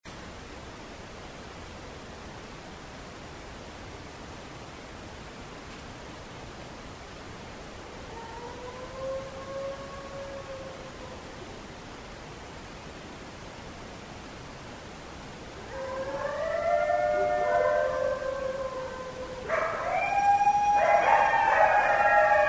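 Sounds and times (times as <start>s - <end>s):
coyotes howling: 8.0s - 11.2s, 15.6s - 22.4s.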